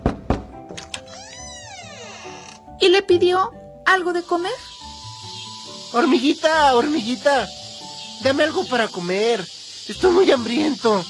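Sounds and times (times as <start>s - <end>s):
knocking on a door: 0.0s - 0.8s
speech: 2.8s - 4.7s, 5.9s - 7.6s, 8.2s - 11.0s.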